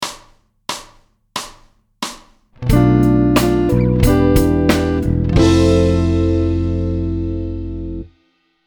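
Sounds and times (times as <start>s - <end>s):
musical chord: 2.6s - 8.1s.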